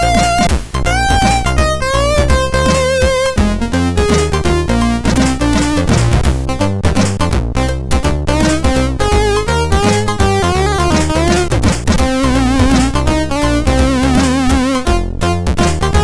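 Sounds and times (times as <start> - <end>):
funky chiptune music on MOS6581 sound chip: 0.0 - 16.0.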